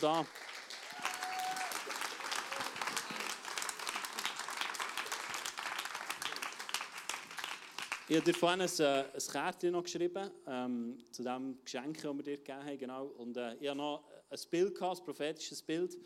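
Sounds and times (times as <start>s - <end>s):
speech: 0.0s - 0.5s, 8.1s - 16.0s
audience applause: 0.0s - 8.4s.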